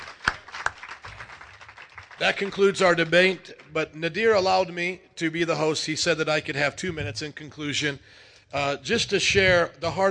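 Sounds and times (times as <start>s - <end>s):
two sharp hand claps: 0.0s - 3.8s
scattered audience clapping: 0.0s - 4.5s
speech: 2.2s - 10.0s.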